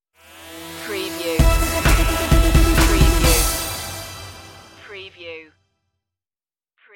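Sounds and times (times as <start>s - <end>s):
TV stinger: 0.2s - 5.2s.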